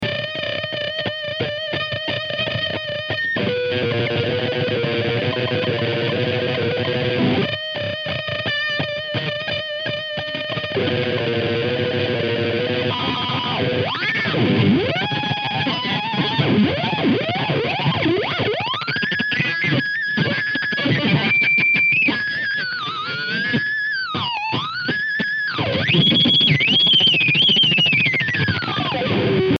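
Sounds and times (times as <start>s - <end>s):
guitar solo: 0.0s - 29.5s.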